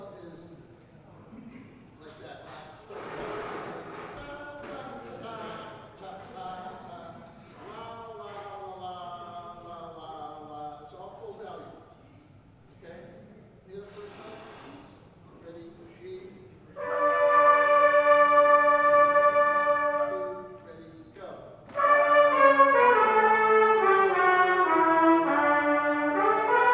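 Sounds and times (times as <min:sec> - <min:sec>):
brass band playing a parade tune: 0:16.8 - 0:20.7, 0:21.7 - 0:26.7.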